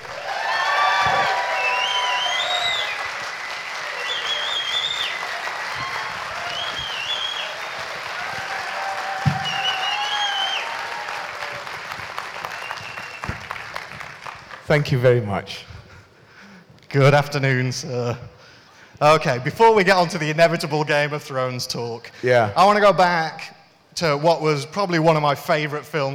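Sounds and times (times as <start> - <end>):
studio audience applause welcoming James Cosmo: 0.0 - 14.7
speech: 14.7 - 15.7, 16.9 - 18.4, 19.0 - 26.1.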